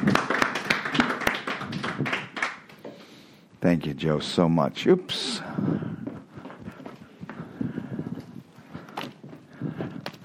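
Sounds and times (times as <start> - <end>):
audience round of applause: 0.0 - 2.8
speech: 3.6 - 5.9.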